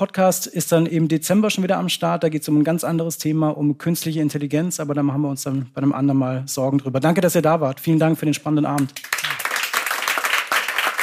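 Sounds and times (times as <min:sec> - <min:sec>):
speech: 0:00.0 - 0:09.3
applause: 0:08.8 - 0:11.0.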